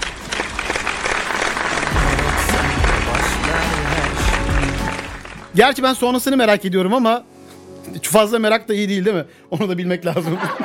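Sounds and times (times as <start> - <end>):
applause: 0.0 - 5.6
speech: 5.6 - 7.3, 7.9 - 10.6
laughter: 10.1 - 10.6.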